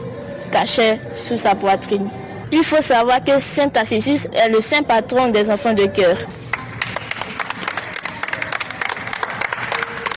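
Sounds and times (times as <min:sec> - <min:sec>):
speech: 0:00.5 - 0:06.4
audience applause: 0:06.5 - 0:10.1.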